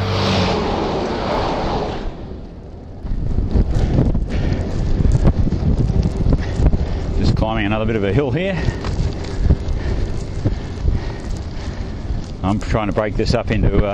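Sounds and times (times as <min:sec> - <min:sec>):
road train truck roaring past: 0:00.0 - 0:04.0
gusty, buffeting wind noise: 0:00.0 - 0:13.9
low rumble: 0:00.0 - 0:13.9
speech: 0:07.5 - 0:08.9, 0:12.5 - 0:13.9.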